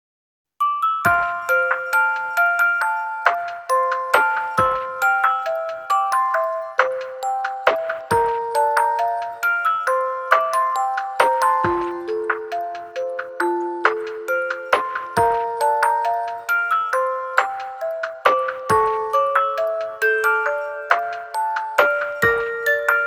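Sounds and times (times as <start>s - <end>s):
instrumental music: 0.6s - 23.0s.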